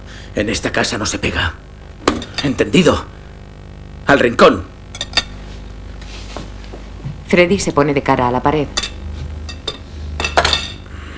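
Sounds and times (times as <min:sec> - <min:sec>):
low steady hum: 0:00.0 - 0:11.1
speech: 0:00.4 - 0:01.7, 0:02.4 - 0:03.2, 0:04.1 - 0:04.7, 0:07.3 - 0:08.9
dishes and utensils clinking in a home kitchen while baking a cake: 0:02.1 - 0:02.6, 0:04.9 - 0:05.4, 0:08.7 - 0:10.9.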